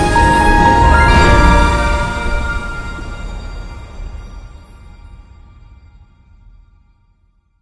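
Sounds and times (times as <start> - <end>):
large win sound: 0.2 - 3.5.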